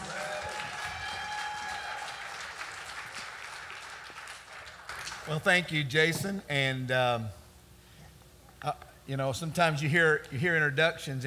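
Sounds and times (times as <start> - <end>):
audience applause welcoming a guest speaker: 0.0 - 5.4
speech: 5.3 - 7.4, 8.6 - 11.2.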